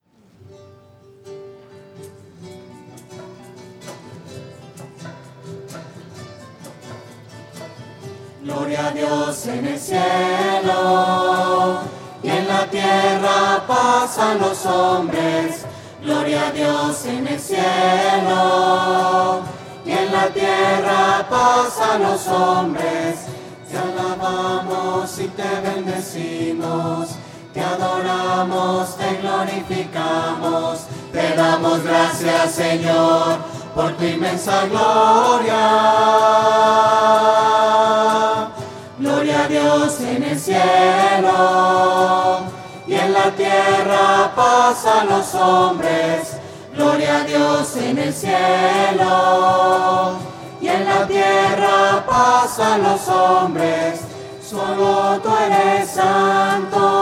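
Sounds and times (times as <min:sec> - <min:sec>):
voices singing: 0:08.2 - 0:57.0.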